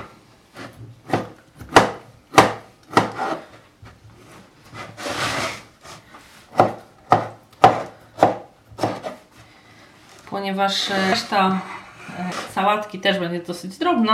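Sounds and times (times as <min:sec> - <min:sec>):
knife chopping tomato on wooden board: 0:00.6 - 0:03.4, 0:06.5 - 0:09.2
speech: 0:10.5 - 0:14.1.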